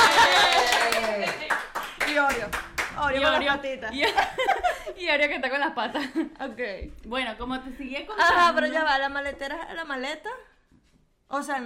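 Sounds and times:
laughter: 0.0 - 1.5, 3.1 - 5.0
audience hand clapping: 0.0 - 3.0
speech: 2.5 - 10.5, 11.3 - 11.6.

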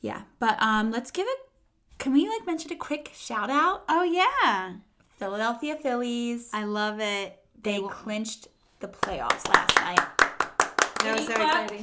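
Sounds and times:
speech: 0.0 - 1.4, 2.0 - 10.2, 11.0 - 11.8
hands clapping: 9.0 - 11.8.

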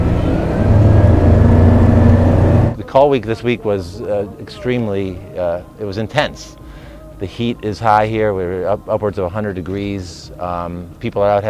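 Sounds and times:
race car engines roaring at the start of a race: 0.0 - 2.8
speech: 2.9 - 6.6, 7.2 - 11.4.

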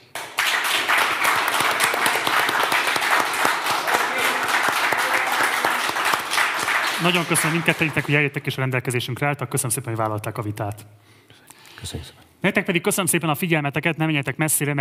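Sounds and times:
audience applause: 0.1 - 8.4
speech: 7.0 - 11.2, 11.8 - 14.7.

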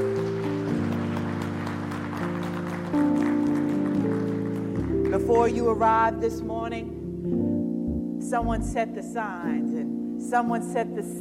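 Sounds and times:
audience clapping: 0.0 - 5.6
keyboard or organ chords: 0.0 - 10.8
speech: 5.2 - 7.4, 8.3 - 11.1.

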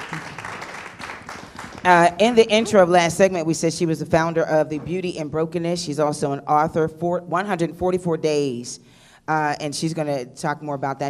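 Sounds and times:
crowd applauding: 0.0 - 2.5
speech: 1.8 - 11.0.

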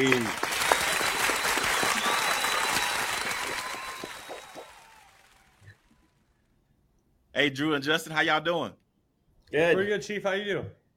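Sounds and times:
speech: 0.0 - 0.4, 7.4 - 8.8, 9.5 - 10.8
audience applause welcoming guests: 0.0 - 6.2.

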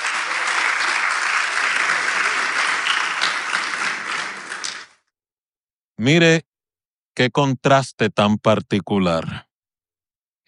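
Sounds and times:
audience applauding: 0.0 - 5.0
speech: 6.0 - 6.5, 7.2 - 9.5.

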